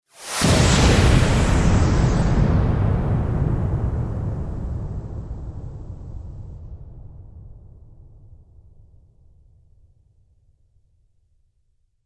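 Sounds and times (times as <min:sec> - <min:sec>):
explosion: 0:00.1 - 0:09.2.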